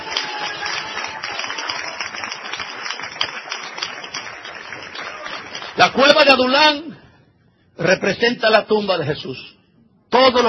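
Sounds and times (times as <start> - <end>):
audience applause: 0.0 - 6.2
speech: 5.8 - 6.9, 7.8 - 10.4.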